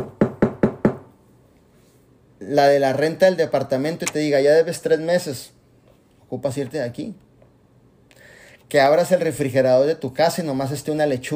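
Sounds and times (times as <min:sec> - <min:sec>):
knocking on an apartment door: 0:00.0 - 0:01.1
speech: 0:02.5 - 0:05.6, 0:06.3 - 0:07.3, 0:08.7 - 0:11.3.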